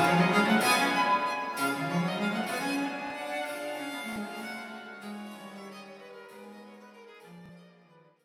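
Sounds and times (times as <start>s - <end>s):
trio sonata allegro in C: 0.0s - 5.4s.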